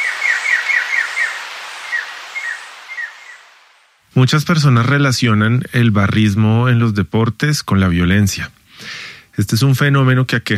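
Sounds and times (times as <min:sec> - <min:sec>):
scarlet jay trill: 0:00.0 - 0:03.6
speech: 0:04.2 - 0:10.5.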